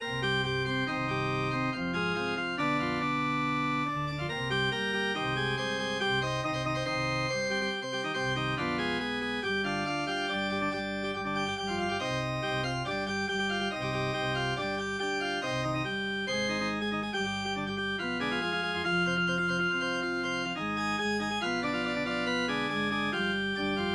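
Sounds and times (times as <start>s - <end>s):
organ symphony: 0.0s - 23.9s.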